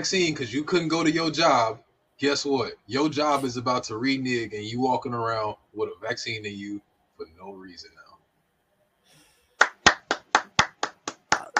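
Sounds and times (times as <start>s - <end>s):
speech: 0.0s - 8.0s
hand clapping: 9.6s - 11.5s.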